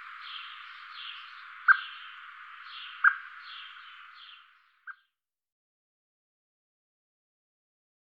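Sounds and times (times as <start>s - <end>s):
Eurasian blackbird giving thin high drawn-out seee notes: 0.0s - 4.8s.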